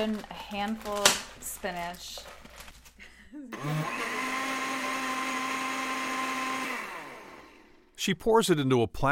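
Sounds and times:
speech: 0.1 - 2.3, 3.4 - 4.2, 8.0 - 9.1
blender motor whirring making a green smoothie: 3.5 - 8.0.

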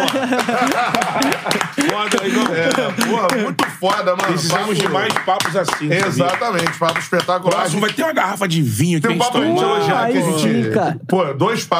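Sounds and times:
laughter: 0.0 - 6.8, 9.1 - 10.6
hand clapping: 0.0 - 8.1
speech: 0.2 - 11.7.

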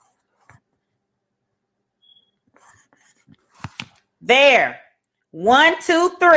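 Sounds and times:
handwriting pen strokes: 2.5 - 3.8
speech: 4.2 - 6.3.

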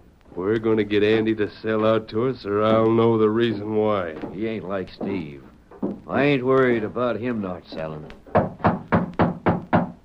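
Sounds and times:
speech: 0.4 - 5.5, 6.1 - 8.5
firm knocking on a door: 5.0 - 6.1, 8.3 - 10.0.

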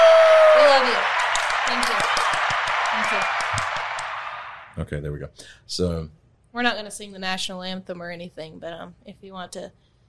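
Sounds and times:
applause: 0.0 - 4.8
speech: 4.8 - 9.9.

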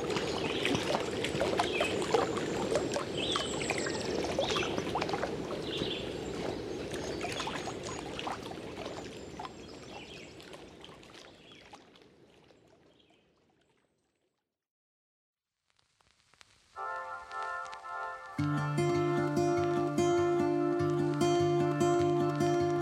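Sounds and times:
canoe trip splashing and rushing water: 0.0 - 12.8, 16.8 - 22.8
sustained musical tones: 16.8 - 22.8.

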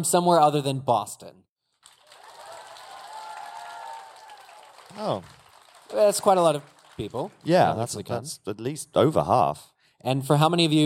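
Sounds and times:
speech: 0.0 - 1.5, 4.9 - 10.8
convention audience applause: 1.8 - 8.1.

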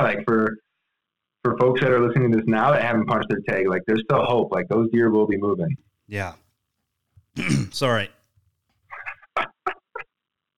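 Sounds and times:
speech: 0.0 - 0.4, 1.5 - 6.4, 7.4 - 8.2
person coughing after water went down the wrong pipe: 7.4 - 7.8.

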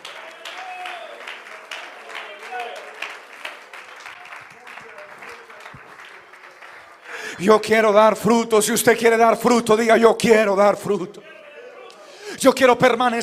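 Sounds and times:
audience applause: 0.0 - 8.1
speech: 7.4 - 11.3, 12.4 - 13.2.

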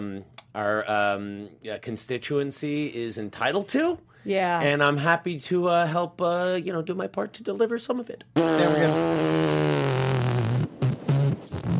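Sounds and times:
speech: 0.0 - 9.8
fart noises: 8.4 - 11.7.

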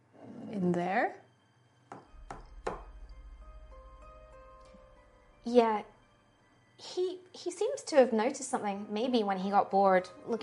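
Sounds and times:
steady low hum with faint tonal ringing: 0.0 - 10.4
short dull knocks on a door: 1.9 - 3.1
speech: 5.5 - 5.9, 6.8 - 10.4.

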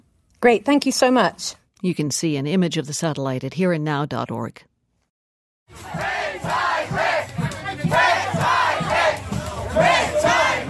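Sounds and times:
speech: 0.4 - 4.7, 5.7 - 7.0
demonstrators shouting a protest chant in Venice Florida: 5.8 - 10.6.

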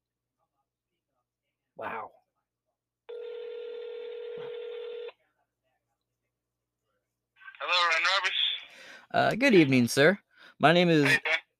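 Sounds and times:
speech: 1.8 - 2.2, 8.0 - 8.4, 9.1 - 11.3
telephone ringing: 3.1 - 5.1.

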